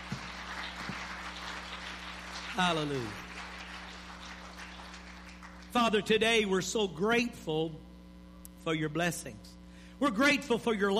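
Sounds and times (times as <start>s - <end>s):
audience clapping: 0.0s - 6.2s
speech: 2.6s - 3.2s, 5.8s - 7.9s, 8.6s - 10.9s.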